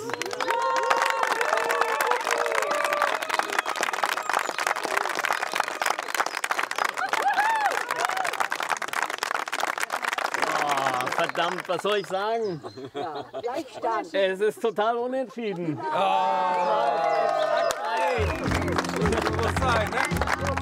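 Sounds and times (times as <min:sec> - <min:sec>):
scattered cheers and whoops: 0:00.0 - 0:08.6, 0:15.9 - 0:18.7
audience clapping: 0:00.0 - 0:12.4, 0:16.3 - 0:20.5
laughter: 0:10.4 - 0:11.3, 0:12.4 - 0:20.5
speech: 0:11.4 - 0:18.5.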